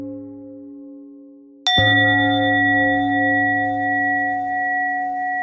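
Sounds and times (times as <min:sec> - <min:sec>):
bells ringing: 0:01.7 - 0:05.4.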